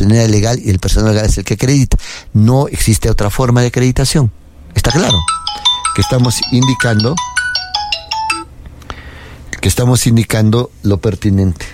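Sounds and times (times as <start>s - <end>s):
speech: 0.0s - 7.4s, 9.6s - 11.7s
mobile phone ringtone at an election-day meeting: 4.9s - 8.5s.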